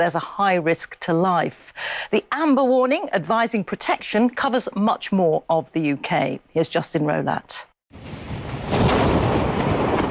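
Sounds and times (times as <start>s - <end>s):
speech: 0.0s - 8.1s
thunder rumbling during an overnight thunderstorm across southern and western England: 7.9s - 10.0s.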